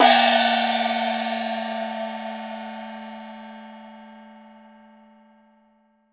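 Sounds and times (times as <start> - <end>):
DARUO OPN percussion kit: 0.0 - 3.3.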